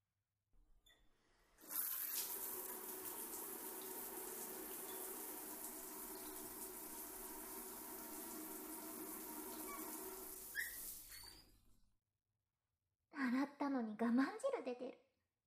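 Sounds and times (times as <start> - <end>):
shower water running: 1.6 - 11.4
speech: 14.0 - 15.1.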